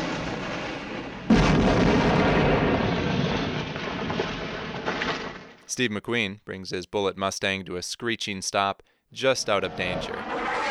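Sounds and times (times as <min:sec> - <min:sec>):
gas station explosion after car crash, crackling fireball roar: 0:00.0 - 0:05.6, 0:09.6 - 0:10.6
speech: 0:05.8 - 0:10.4.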